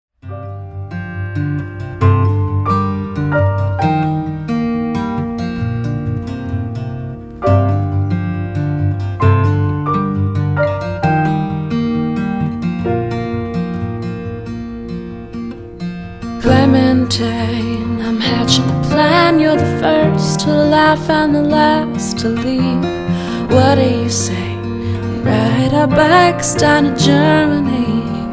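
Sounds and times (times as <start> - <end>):
piano: 0.2 - 28.3.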